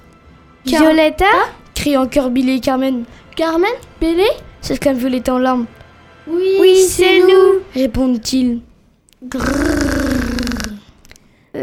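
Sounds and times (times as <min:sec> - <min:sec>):
speech: 0:00.6 - 0:09.8
creature growling: 0:09.3 - 0:10.8.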